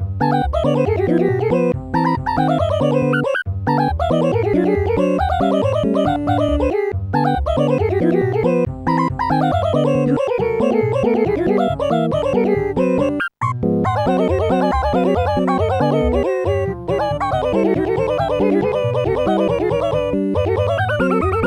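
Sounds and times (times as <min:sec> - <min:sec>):
ragtime tune: 0:00.2 - 0:21.4.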